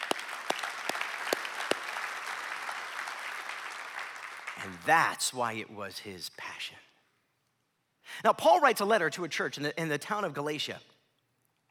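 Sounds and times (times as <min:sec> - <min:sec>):
audience clapping: 0:00.0 - 0:05.0
speech: 0:04.6 - 0:06.8, 0:08.2 - 0:10.9.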